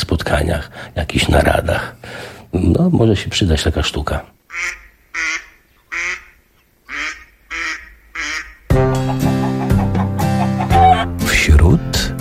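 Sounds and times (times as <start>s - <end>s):
speech: 0.0s - 5.3s
mallard ducks quacking: 4.5s - 11.2s
loud music: 8.7s - 11.4s.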